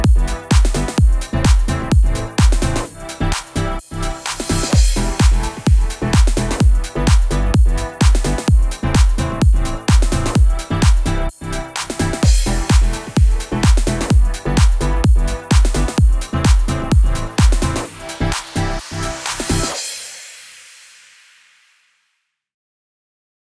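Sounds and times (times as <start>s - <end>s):
house music in E minor at 128 bpm: 0.0s - 20.3s.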